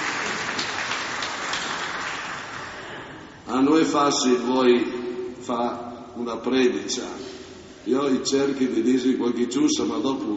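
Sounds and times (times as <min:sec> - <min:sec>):
audience applause: 0:00.0 - 0:03.1
speech: 0:03.5 - 0:10.3.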